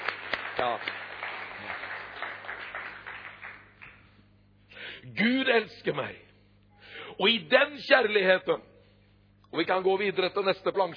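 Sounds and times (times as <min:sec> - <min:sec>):
audience applause: 0:00.0 - 0:04.0
speech: 0:00.6 - 0:01.0, 0:05.0 - 0:06.2, 0:07.2 - 0:08.7, 0:09.5 - 0:10.9.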